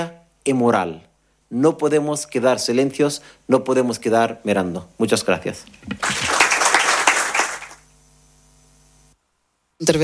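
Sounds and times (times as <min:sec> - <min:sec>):
speech: 0:00.0 - 0:06.2, 0:09.8 - 0:10.0
applause: 0:05.9 - 0:07.9.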